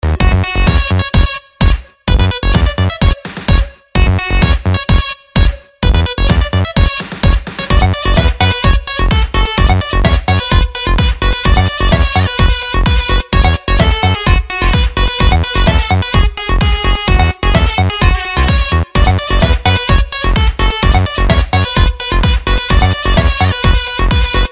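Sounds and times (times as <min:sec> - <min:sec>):
Turkish techno music: 0:00.0 - 0:24.5.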